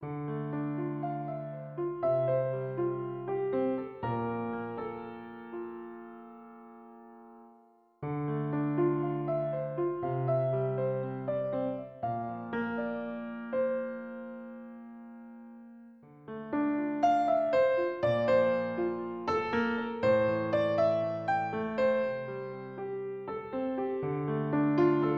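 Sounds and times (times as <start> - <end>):
piano loop: 0.0 - 25.1.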